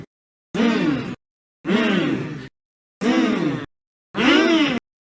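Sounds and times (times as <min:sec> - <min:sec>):
person humming: 0:00.6 - 0:02.4, 0:03.0 - 0:04.8.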